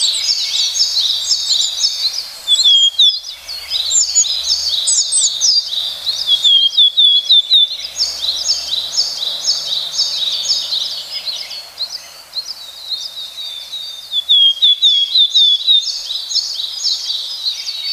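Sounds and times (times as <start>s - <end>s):
willow tit calls: 0.0s - 17.9s.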